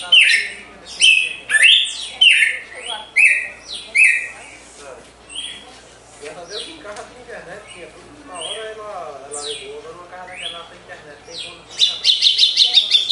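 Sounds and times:
Red-cowled cardinal whistling: 0.0 - 4.6, 5.3 - 5.6, 11.3 - 13.0.

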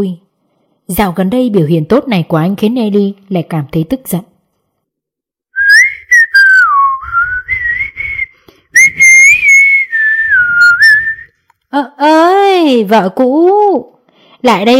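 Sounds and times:
speech: 0.0 - 0.2, 0.9 - 4.3, 11.7 - 14.7
man whistling a cheerful tune: 5.6 - 11.4.

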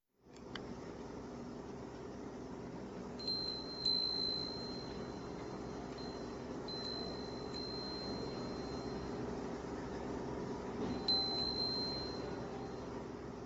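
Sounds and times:
soft hiss: 0.2 - 13.4
Japanese wind chimes tinkling in a breeze: 3.2 - 9.4, 10.8 - 13.0.

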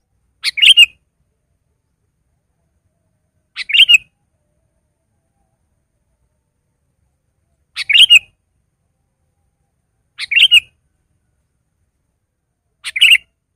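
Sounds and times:
Sooty-headed bulbul song of short bubbly phrases: 0.4 - 1.0, 3.5 - 4.2, 7.8 - 8.4, 10.2 - 10.8, 12.8 - 13.4.

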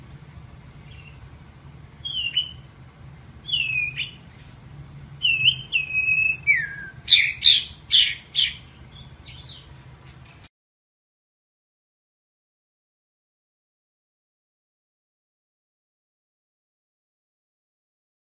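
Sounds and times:
white-rumped shama training song with rich whistles and buzzy bursts: 0.8 - 1.2, 2.0 - 2.7, 3.4 - 4.6, 5.2 - 9.7.

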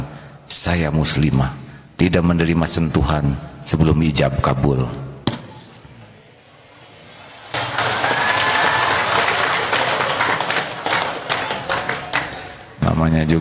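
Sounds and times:
speech: 0.6 - 5.1, 13.1 - 13.3
audience applause: 7.1 - 12.8.

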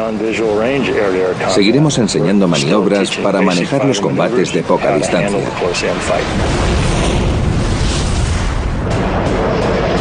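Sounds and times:
speech: 0.0 - 6.8
Sidewinder air-to-air missile launch from a Raptor fighter jet: 4.8 - 9.9.

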